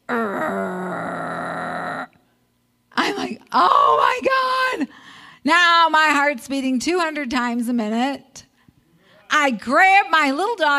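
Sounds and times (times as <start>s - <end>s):
person imitating a snarling possum: 0.1s - 2.2s
speech: 3.6s - 8.5s, 9.3s - 10.7s.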